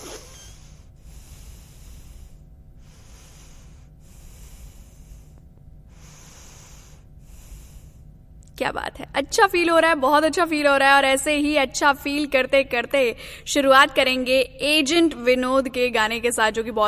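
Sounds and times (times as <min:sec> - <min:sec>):
long deep breathing: 0:00.0 - 0:08.4
speech: 0:08.6 - 0:16.8.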